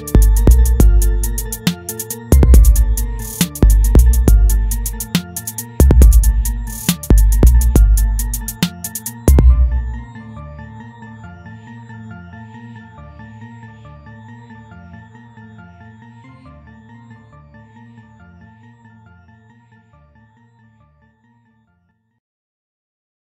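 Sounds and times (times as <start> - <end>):
rap beat: 0.0 - 10.0.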